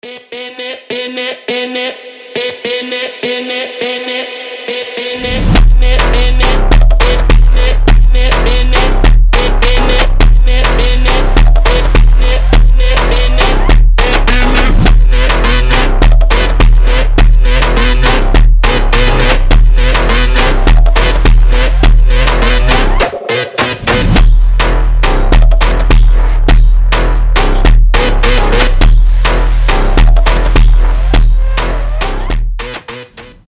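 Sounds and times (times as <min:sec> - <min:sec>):
super slowed Brazilian phonk music: 0:00.0 - 0:33.4.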